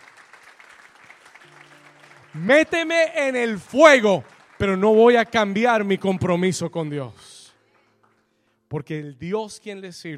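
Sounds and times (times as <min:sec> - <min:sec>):
audience applause: 0:00.0 - 0:06.9
speech: 0:02.3 - 0:07.2, 0:08.7 - 0:10.1.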